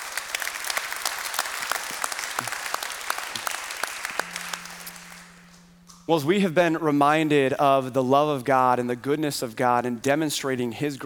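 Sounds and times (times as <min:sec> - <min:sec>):
church congregation applause: 0:00.0 - 0:05.5
speech: 0:06.1 - 0:11.0.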